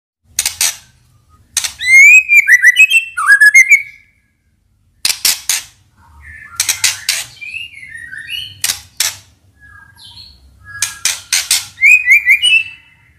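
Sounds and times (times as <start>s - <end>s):
white-rumped shama whistled warbling: 1.9s - 4.1s.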